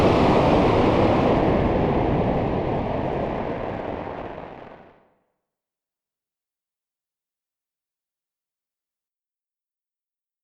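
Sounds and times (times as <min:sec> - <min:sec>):
wind storm: 0:00.0 - 0:04.9.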